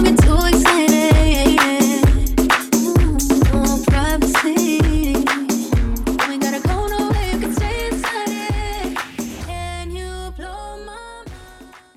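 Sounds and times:
riddim rework at 130 BPM: 0:00.0 - 0:09.4.

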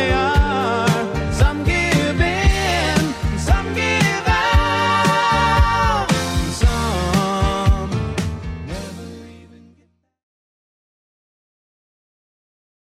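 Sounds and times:
1980s style music at 115 bpm: 0:00.0 - 0:09.8.

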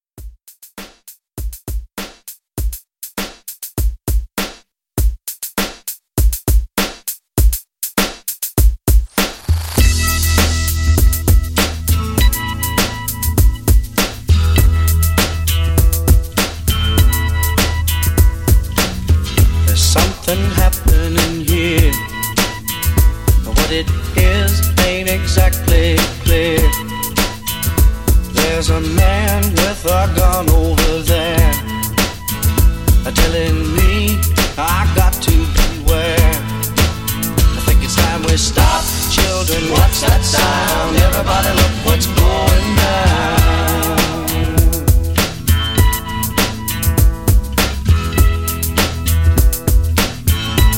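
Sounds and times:
60s folk rock re-drum: 0:01.4 - 0:50.7.

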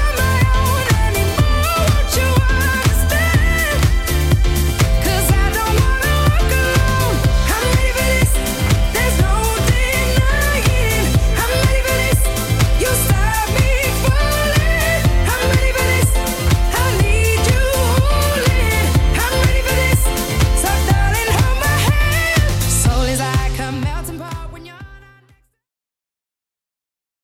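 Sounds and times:
bass house music at 123 bpm: 0:00.0 - 0:25.5.

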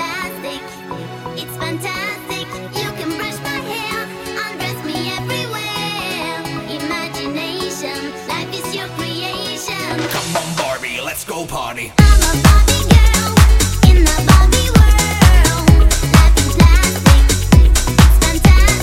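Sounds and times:
90s pop drum beat: 0:09.9 - 0:11.1, 0:12.0 - 0:18.8.

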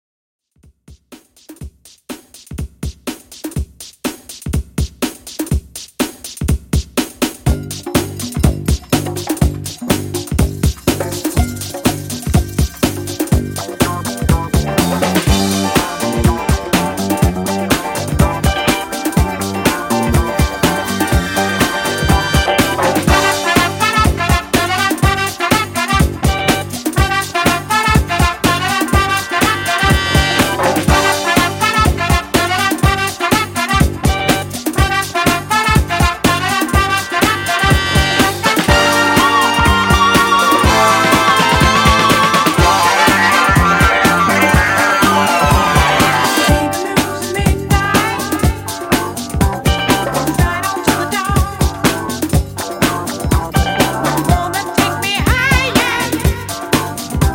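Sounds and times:
70s disco drum beat: 0:00.6 - 0:57.3.

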